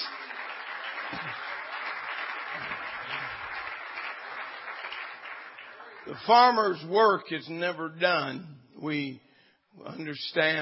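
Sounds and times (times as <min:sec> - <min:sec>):
crowd clapping: 0:00.0 - 0:06.9
speech: 0:06.1 - 0:10.5.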